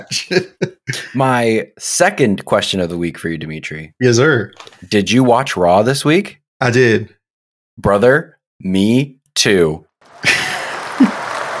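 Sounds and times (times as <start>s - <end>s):
laughter: 0.0s - 1.2s, 10.1s - 11.5s
speech: 0.0s - 7.2s, 7.8s - 10.4s
applause: 10.0s - 11.5s.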